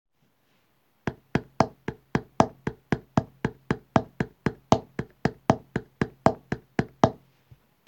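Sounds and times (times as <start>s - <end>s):
rhythm: 1.1s - 7.2s.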